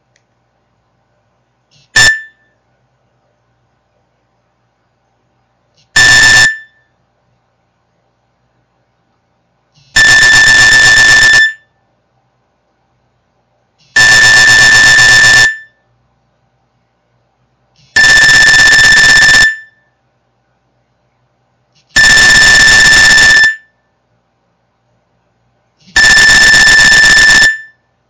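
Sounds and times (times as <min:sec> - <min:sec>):
Nokia standard phone alarm tone: 0:02.0 - 0:02.5, 0:06.0 - 0:06.9, 0:10.0 - 0:11.7, 0:14.0 - 0:15.8, 0:18.0 - 0:19.8, 0:22.0 - 0:23.8, 0:25.9 - 0:27.8.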